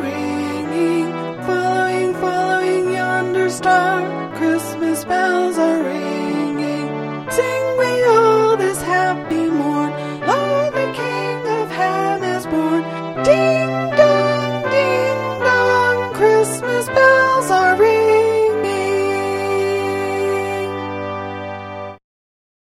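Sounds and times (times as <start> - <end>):
soprano singing carols: 0.0 - 21.0.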